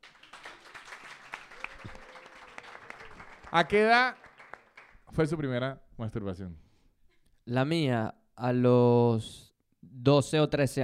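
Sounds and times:
audience applause: 0.0 - 5.0
speech: 3.5 - 4.2, 5.1 - 6.6, 7.5 - 10.8.

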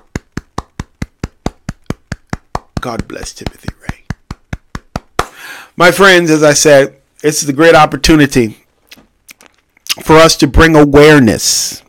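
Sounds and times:
hand claps: 0.0 - 5.4
speech: 2.8 - 4.0, 5.8 - 8.6, 10.1 - 11.8.

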